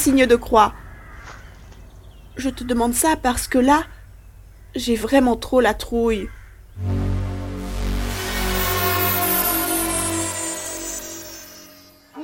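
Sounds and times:
speech: 0.0s - 0.8s, 2.4s - 4.0s, 4.7s - 7.0s
steady humming drone: 6.8s - 12.1s.

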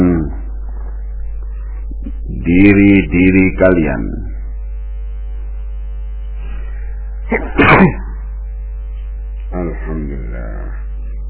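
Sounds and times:
speech: 2.5s - 4.3s, 7.3s - 8.0s
sneeze: 7.3s - 8.1s.

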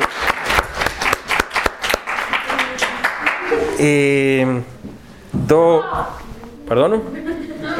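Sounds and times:
class applauding a student's correct answer: 0.0s - 3.8s
speech: 3.8s - 7.3s
laughter: 7.1s - 7.7s.

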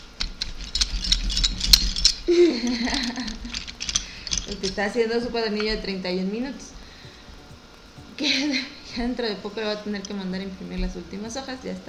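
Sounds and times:
colored pencils rattling while drawing: 0.0s - 5.9s
speech: 2.3s - 3.5s, 4.5s - 6.7s, 8.2s - 11.8s.

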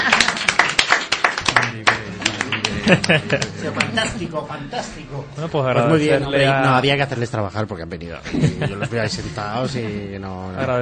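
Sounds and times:
applause from a seated audience: 0.0s - 4.1s
laughter: 0.0s - 4.4s, 8.2s - 10.1s
speech: 2.9s - 10.8s.

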